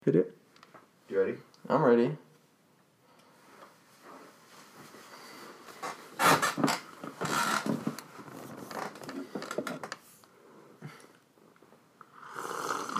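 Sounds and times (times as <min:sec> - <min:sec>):
speech: 0:00.1 - 0:00.4, 0:01.2 - 0:02.2
soft rustling: 0:03.2 - 0:06.2, 0:06.8 - 0:10.3
slurping hot drink: 0:12.1 - 0:12.9.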